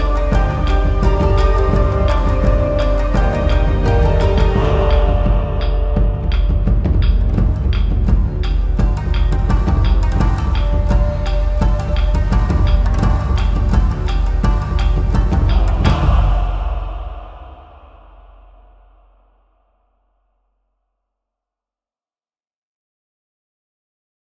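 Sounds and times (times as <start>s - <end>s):
ancient timeless music beat: 0.0s - 19.4s.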